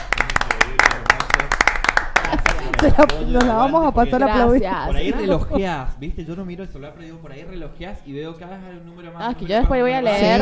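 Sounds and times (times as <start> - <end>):
applause, hands clapping: 0.0 - 3.7
laughter: 2.2 - 3.6
speech: 2.8 - 10.3.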